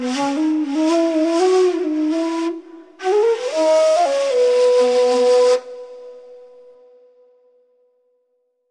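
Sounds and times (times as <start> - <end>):
kaval played in Persian position: 0.0 - 6.0.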